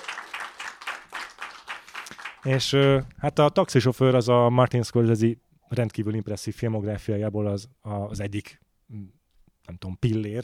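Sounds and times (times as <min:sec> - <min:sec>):
crowd applauding: 0:00.0 - 0:03.0
speech: 0:02.4 - 0:10.4.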